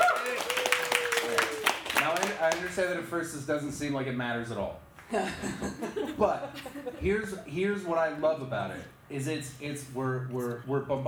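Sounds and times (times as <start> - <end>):
audience applause: 0.0 - 2.7
speech: 2.6 - 11.0
laughter: 5.1 - 7.2.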